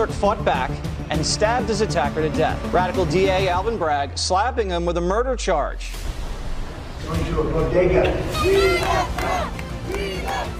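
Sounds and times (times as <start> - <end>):
speech: 0.0 - 6.1, 7.0 - 10.5
crowd cheering and shouting in Upper Manhattan as Trump arrives at a bodega: 8.2 - 10.5.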